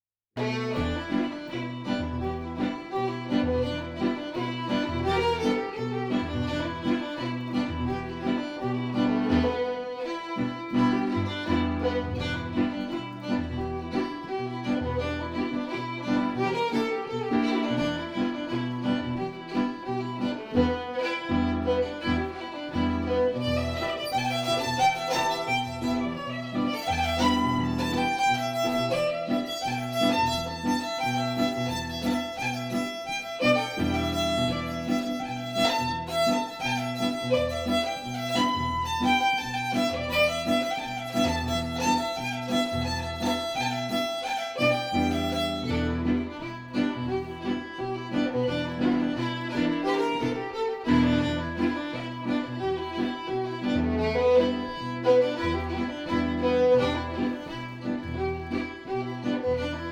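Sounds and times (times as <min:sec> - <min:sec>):
blues fiddle: 0:00.4 - 0:59.9
blues piano: 0:00.4 - 0:59.9.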